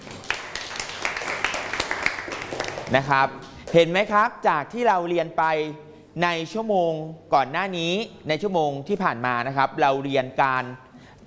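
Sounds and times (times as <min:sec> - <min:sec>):
students in a classroom clapping for a classmate: 0:00.0 - 0:03.8
speech: 0:02.9 - 0:11.2.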